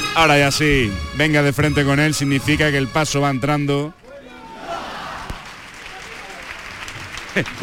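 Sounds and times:
speech: 0.1s - 4.0s, 7.3s - 7.6s
crowd applause: 4.5s - 7.6s.

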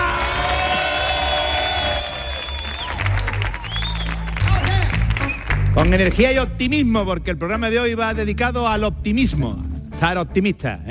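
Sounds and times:
audience cheering, whooping and applauding at the Auditorio Cartuja: 0.0s - 6.2s
speech: 5.8s - 10.9s.

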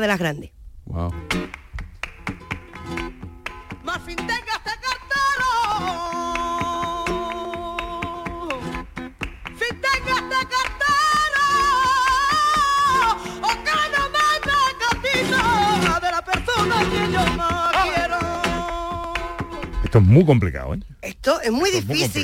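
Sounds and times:
speech: 0.0s - 1.6s, 3.9s - 4.6s, 19.9s - 22.2s
flamenco bulería from Jerez: 1.1s - 20.4s, 21.2s - 22.2s
rhythmic flamenco handclaps: 1.2s - 19.9s
person singing a melismatic melody: 3.9s - 8.8s, 9.6s - 19.9s, 21.8s - 22.2s.

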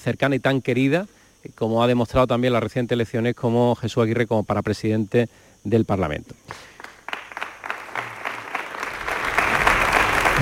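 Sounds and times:
speech: 0.0s - 6.8s
large crowd audience applause: 6.8s - 10.3s.

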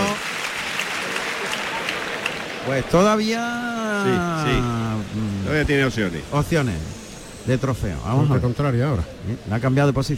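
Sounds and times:
bullring crowd ovation: 0.0s - 5.1s
speech: 2.6s - 10.1s.

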